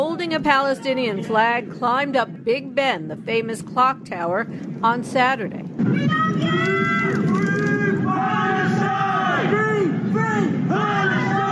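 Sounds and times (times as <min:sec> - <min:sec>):
speech: 0:00.2 - 0:07.0
crowd on the street yelling words of support: 0:05.9 - 0:11.5.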